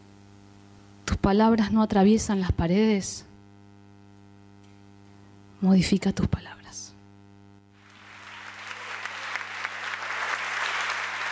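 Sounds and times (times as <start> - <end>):
speech: 1.2 - 3.3, 5.6 - 6.8
audience applause at a concert: 7.8 - 11.3.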